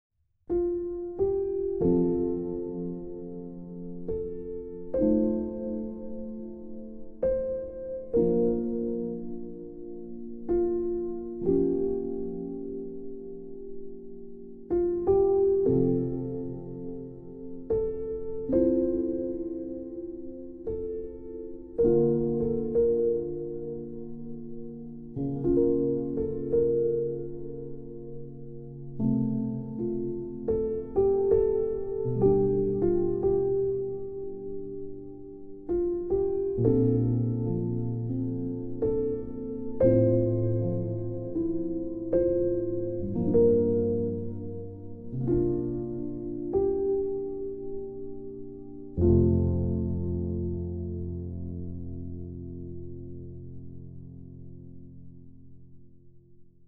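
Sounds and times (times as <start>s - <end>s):
solo piano: 0.4s - 56.6s.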